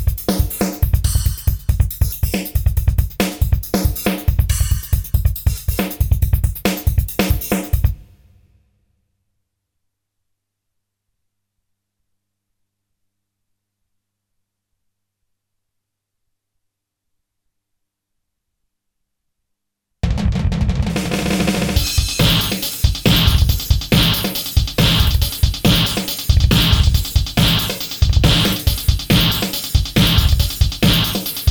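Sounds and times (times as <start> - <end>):
train drum beat: 0.0 - 8.1, 20.0 - 31.5.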